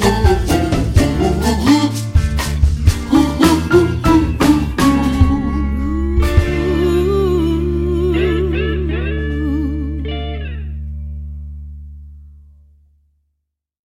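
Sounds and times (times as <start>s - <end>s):
zombie rhumba music: 0.0s - 10.9s.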